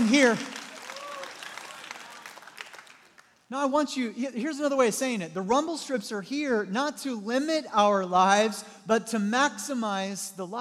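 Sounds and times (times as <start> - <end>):
audience applause: 0.0 - 3.3
speech: 0.1 - 0.5, 3.5 - 10.5
high vocal whoop: 0.8 - 1.5.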